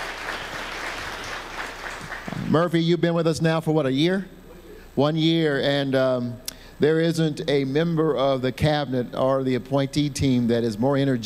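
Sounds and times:
audience applause: 0:00.0 - 0:02.5
speech: 0:02.5 - 0:04.4, 0:05.0 - 0:11.2.

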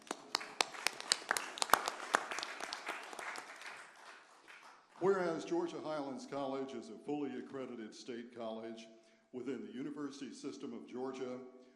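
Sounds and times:
audience applause: 0:00.0 - 0:05.2
speech: 0:05.0 - 0:11.6.

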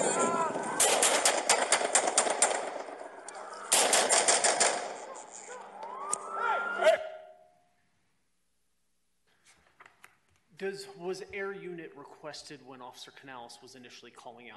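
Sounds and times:
people shouting: 0:00.0 - 0:01.5, 0:05.0 - 0:07.4
bursts of gunfire as police confront a man with a gun: 0:00.0 - 0:05.1
speech: 0:10.6 - 0:14.5.

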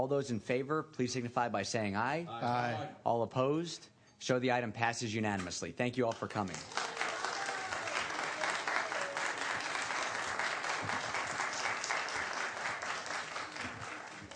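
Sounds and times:
speech: 0:00.0 - 0:06.9
room full of people applauding: 0:06.1 - 0:14.3.

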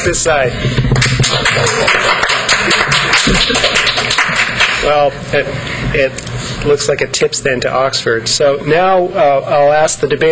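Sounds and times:
speech: 0:00.0 - 0:04.0, 0:04.8 - 0:10.3
small audience applauding to vote: 0:00.9 - 0:05.0.

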